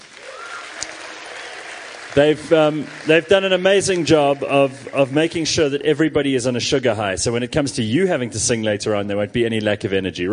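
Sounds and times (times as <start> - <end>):
crowd applauding: 0.0 - 6.2
speech: 2.2 - 10.3.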